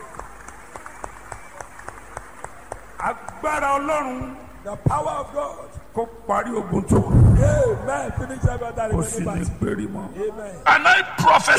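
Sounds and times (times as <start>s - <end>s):
audience clapping together in a steady, even rhythm: 0.0s - 4.6s
low murmur: 0.0s - 11.5s
speech: 3.0s - 11.5s.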